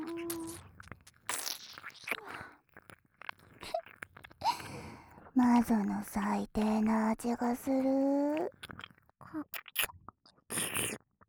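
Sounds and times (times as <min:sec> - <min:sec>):
wet chewing and eating: 0:00.0 - 0:09.9, 0:10.5 - 0:11.0
speech: 0:05.4 - 0:08.6, 0:09.4 - 0:09.6.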